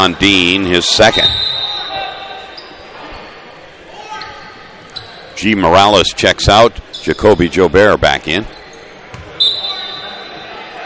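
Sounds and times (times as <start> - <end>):
speech: 0.0 - 1.4, 5.4 - 8.6
high school game crowd noise and voices: 0.0 - 10.8
basketball dribbled behind the back during a high school game: 9.1 - 9.4.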